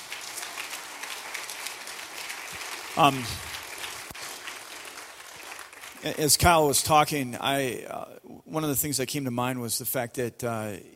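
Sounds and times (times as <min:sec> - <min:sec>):
crowd applause: 0:00.0 - 0:06.8
speech: 0:02.6 - 0:03.5, 0:06.0 - 0:10.9.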